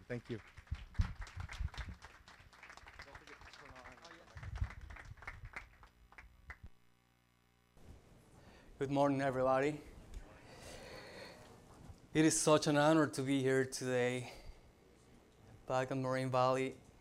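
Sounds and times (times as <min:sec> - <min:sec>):
audience applause welcoming a guest: 0:00.0 - 0:06.6
speech: 0:00.1 - 0:01.1, 0:08.8 - 0:09.9, 0:12.2 - 0:14.4, 0:15.7 - 0:16.8.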